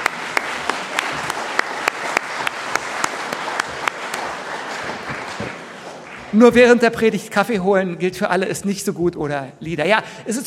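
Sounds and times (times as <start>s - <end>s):
audience applause: 0.0s - 6.6s
speech: 6.3s - 10.4s.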